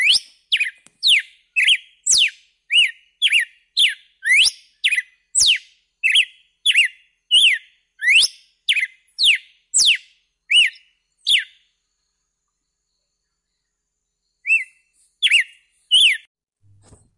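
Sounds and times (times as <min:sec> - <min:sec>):
red-cowled cardinal whistled song: 0:00.0 - 0:11.7, 0:14.4 - 0:16.3.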